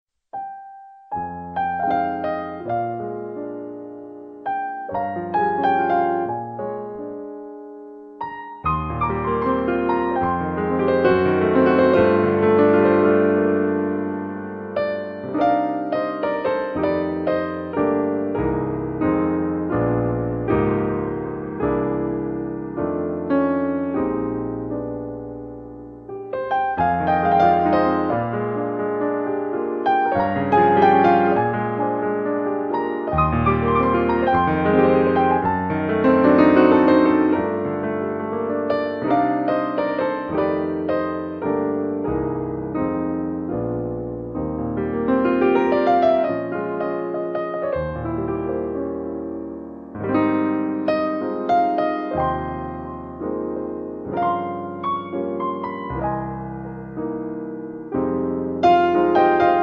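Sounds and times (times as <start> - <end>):
piano playing in A minor: 0.3 - 59.6.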